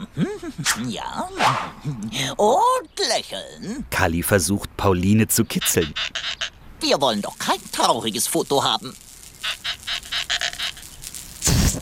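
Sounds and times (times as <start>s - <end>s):
speech: 0.2s - 9.6s
new balloon squeaking: 7.2s - 11.7s.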